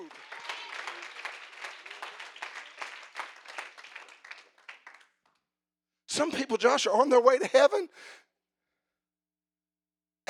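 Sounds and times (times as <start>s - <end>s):
audience clapping: 0.0s - 5.4s
speech: 6.2s - 8.2s.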